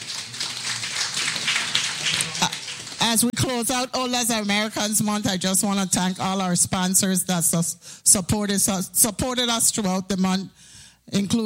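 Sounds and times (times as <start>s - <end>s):
round of applause: 0.0s - 3.3s
speech: 3.0s - 11.4s.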